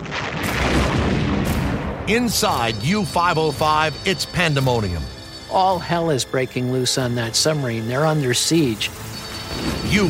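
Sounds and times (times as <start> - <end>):
depth charges exploding underwater: 0.0 - 2.1
speech: 2.1 - 10.0.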